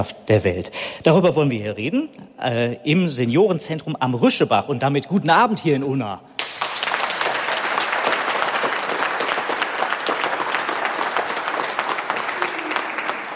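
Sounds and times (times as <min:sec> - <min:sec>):
speech: 0:00.0 - 0:06.4
crowd applauding: 0:06.4 - 0:13.3.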